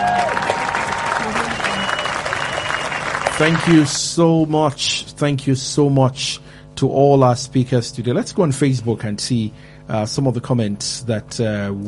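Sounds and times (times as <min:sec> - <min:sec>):
audience applause: 0:00.0 - 0:03.9
speech: 0:03.4 - 0:11.8.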